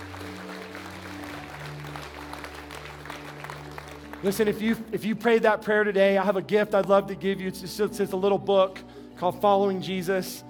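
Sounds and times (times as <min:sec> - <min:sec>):
audience hand clapping: 0:00.0 - 0:05.4
speech: 0:04.2 - 0:10.4.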